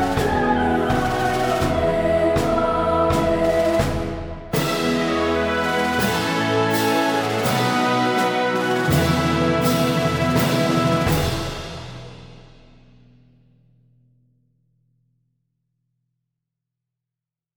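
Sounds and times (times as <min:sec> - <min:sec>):
orchestral music: 0:00.0 - 0:12.8.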